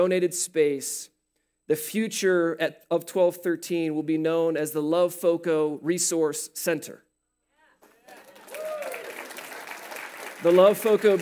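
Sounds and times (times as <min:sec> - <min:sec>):
speech: 0:00.0 - 0:01.1, 0:01.7 - 0:07.1, 0:10.4 - 0:11.2
audience clapping: 0:07.8 - 0:11.2.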